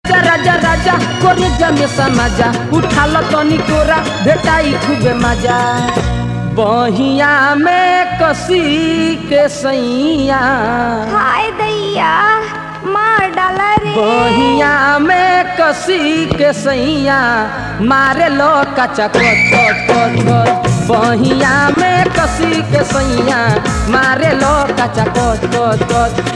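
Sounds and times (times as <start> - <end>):
Bhojpuri music: 0.0 - 26.3.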